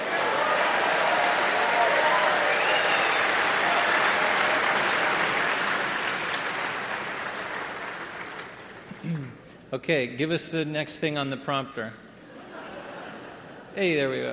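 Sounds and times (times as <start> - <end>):
audience applause: 0.0 - 9.0
speech: 9.8 - 12.0, 13.8 - 14.3
laughter: 12.3 - 14.0.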